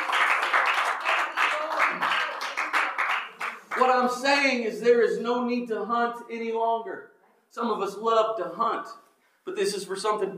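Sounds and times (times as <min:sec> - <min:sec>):
audience clapping hands in praise: 0:00.0 - 0:04.2
speech: 0:03.8 - 0:10.3.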